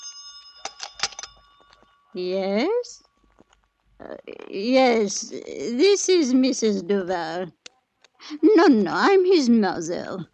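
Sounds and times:
telephone ringing with high metallic bell tone: 0.0 - 2.2
speech: 2.1 - 3.0, 4.0 - 7.6, 8.3 - 10.3.

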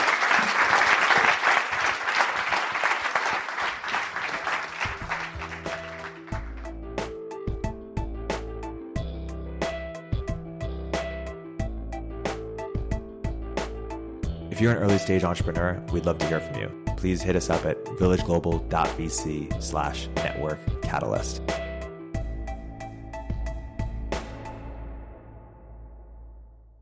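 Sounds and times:
audience applause: 0.0 - 6.7
upbeat music with a steady beat and deep bass notes: 3.7 - 26.5
speech: 14.6 - 21.5.

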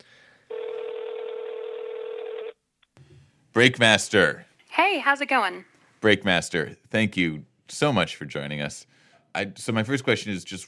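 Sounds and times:
telephone line ringing through a handset: 0.5 - 2.6
speech: 3.6 - 10.6.

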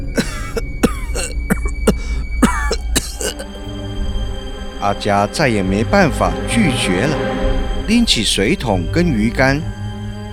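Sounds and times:
old man coughing violently: 0.2 - 3.5
speech: 4.8 - 9.8.

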